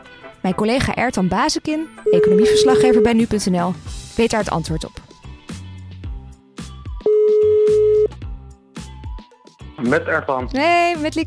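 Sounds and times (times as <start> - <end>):
speech: 0.4 - 5.0, 9.9 - 11.2
telephone call ringing tone: 2.1 - 3.2, 7.1 - 8.1
rhythmic music: 2.1 - 11.2.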